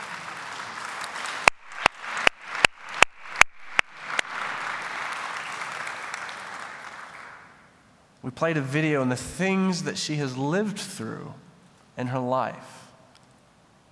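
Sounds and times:
round of applause: 0.0 - 7.7
speech: 8.2 - 11.4, 12.0 - 12.8.

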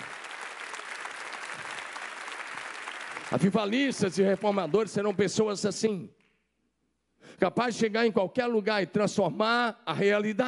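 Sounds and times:
audience applause: 0.0 - 5.5
speech: 3.3 - 6.2, 7.4 - 10.4.

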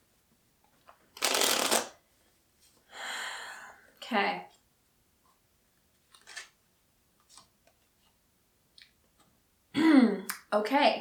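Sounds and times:
oracle cards being shuffled for a card reading: 1.2 - 2.0
speech: 4.1 - 4.5, 10.6 - 10.9.

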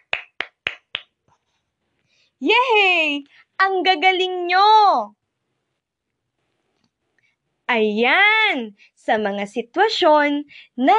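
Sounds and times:
hand claps during a children's lesson: 0.0 - 1.4
speech: 2.4 - 5.2, 7.7 - 10.9.

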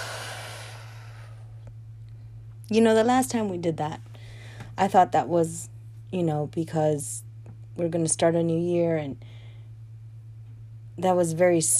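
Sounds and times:
deep breath in through the nose and out through the mouth: 0.0 - 1.5
steady low hum: 0.0 - 11.7
speech: 2.7 - 4.1, 4.8 - 9.3, 11.0 - 11.7.

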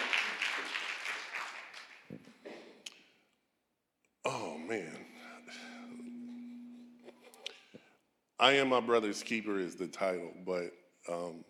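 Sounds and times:
audience applauding: 0.0 - 2.1
speech: 4.7 - 5.0, 8.4 - 11.4.

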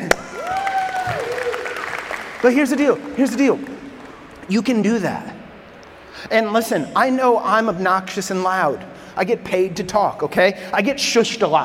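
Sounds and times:
audience applause: 0.3 - 4.6
speech: 2.4 - 3.7, 4.5 - 5.3, 6.2 - 11.6.

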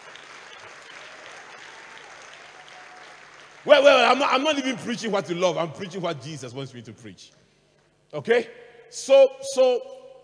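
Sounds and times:
audience clapping: 0.0 - 4.8
speech: 3.6 - 7.4, 8.1 - 10.0.

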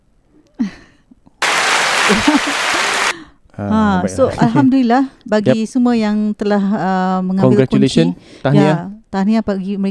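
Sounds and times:
applause: 1.4 - 3.2
laughter: 1.8 - 3.2
speech: 2.1 - 2.5, 3.6 - 9.8.

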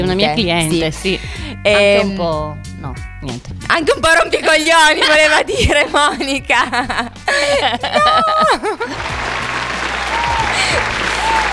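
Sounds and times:
people laughing: 0.0 - 2.4, 4.1 - 11.5
speech: 0.0 - 9.3
crowd applause: 8.0 - 11.5.

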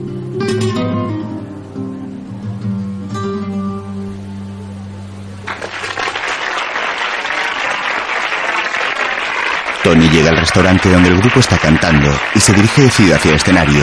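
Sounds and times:
sustained musical notes: 0.0 - 5.5
audience applause in a restaurant for a live song: 5.4 - 13.8
speech: 10.2 - 13.8.

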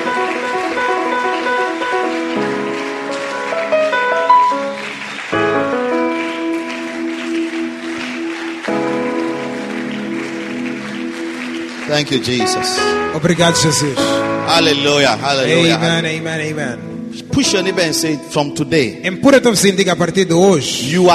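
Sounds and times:
audience clapping: 0.0 - 16.3
speech: 12.0 - 21.1.

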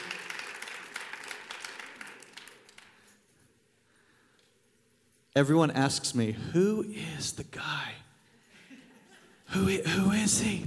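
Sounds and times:
audience applause: 0.0 - 3.1
speech: 5.4 - 8.0, 9.6 - 10.6.

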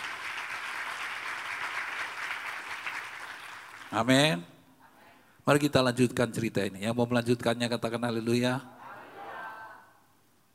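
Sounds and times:
audience applause: 0.0 - 3.9
speech: 3.9 - 4.5, 5.5 - 8.7.

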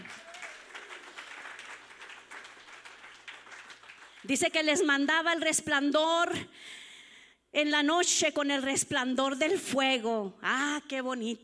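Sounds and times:
audience clapping hands: 0.0 - 4.8
speech: 4.2 - 6.8, 7.6 - 11.4.

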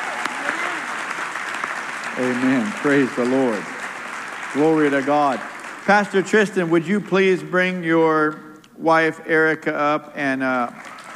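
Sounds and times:
audience clapping: 0.0 - 7.3, 10.6 - 11.1
speech: 2.2 - 3.7, 4.5 - 10.9.

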